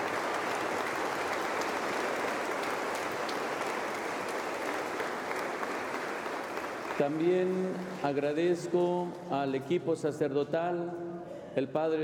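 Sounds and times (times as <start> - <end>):
audience applause: 0.0 - 8.3
speech: 7.0 - 12.0.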